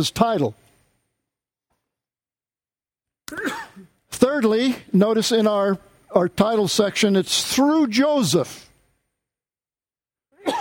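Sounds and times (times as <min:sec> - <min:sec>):
speech: 0:00.0 - 0:00.6, 0:04.2 - 0:08.6
sneeze: 0:03.3 - 0:03.9, 0:10.4 - 0:10.5.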